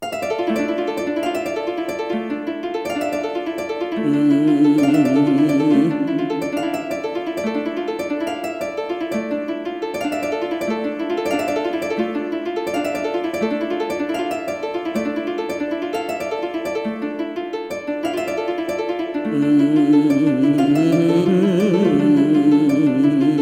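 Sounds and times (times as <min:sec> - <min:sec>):
harp: 0:00.0 - 0:23.3.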